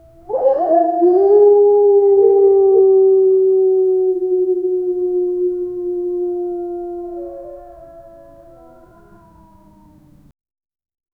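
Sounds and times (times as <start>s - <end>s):
wolves howling in a canyon: 0.0s - 10.3s.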